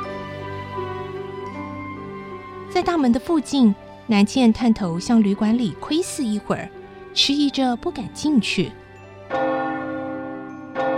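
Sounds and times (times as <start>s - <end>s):
speech: 2.8s - 9.5s
clock bell striking the hour: 9.3s - 10.9s.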